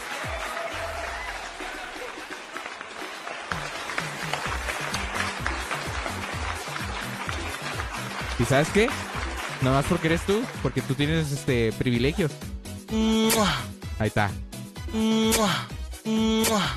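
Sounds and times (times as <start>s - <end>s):
double applause sound effect: 0.0s - 11.8s
speech: 8.4s - 16.7s.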